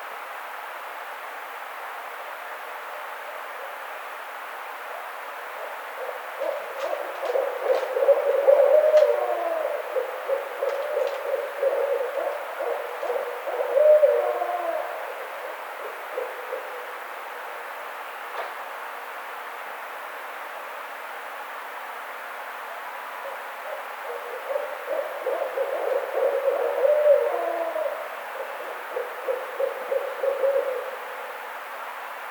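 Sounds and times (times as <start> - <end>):
Barred Owl calling: 4.9 - 17.1, 23.2 - 31.3.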